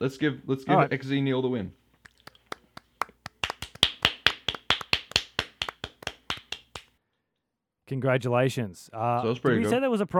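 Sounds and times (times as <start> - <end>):
speech: 0.0 - 1.8, 7.9 - 10.1
round of applause: 2.1 - 6.9.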